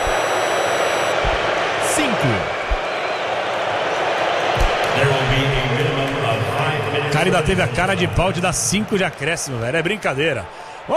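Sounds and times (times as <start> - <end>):
stadium crowd booing: 0.0 - 10.9
speech: 2.2 - 2.5, 7.0 - 10.9.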